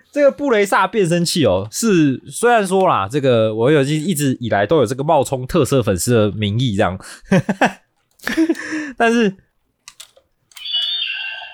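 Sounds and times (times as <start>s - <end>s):
speech: 0.1s - 9.4s
coin pulled out of plastic toy clicks and rattles: 8.0s - 8.6s, 9.8s - 11.0s
electronic tone: 10.6s - 11.5s.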